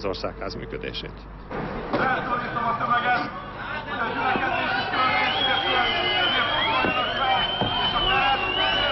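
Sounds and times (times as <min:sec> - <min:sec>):
speech: 0:00.0 - 0:06.0
crowd of protesters chattering: 0:01.9 - 0:08.9
protesters shouting: 0:04.0 - 0:08.9.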